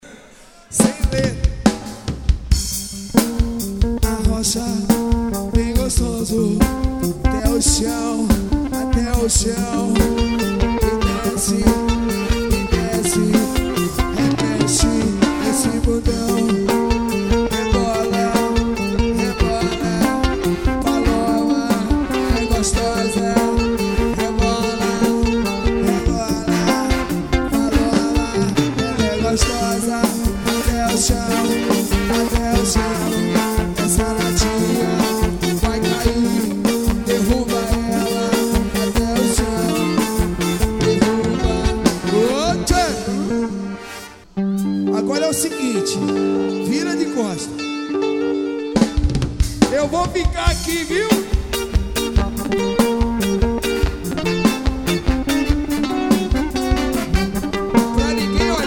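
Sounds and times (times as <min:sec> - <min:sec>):
live samba music: 0:00.7 - 0:58.6.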